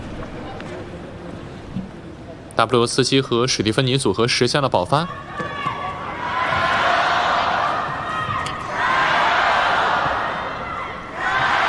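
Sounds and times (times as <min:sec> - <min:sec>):
speech: 0:02.6 - 0:05.4
tennis crowd cheering and chanting: 0:05.4 - 0:11.6.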